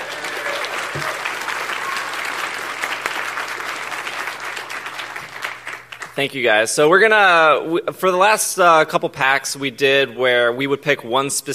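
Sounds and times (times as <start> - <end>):
audience round of applause: 0.0 - 6.2
speech: 6.2 - 11.5.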